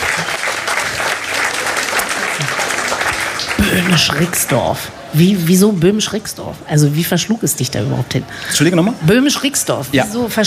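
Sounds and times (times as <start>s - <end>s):
audience clapping: 0.0s - 4.9s
speech: 2.4s - 2.6s, 3.6s - 10.4s.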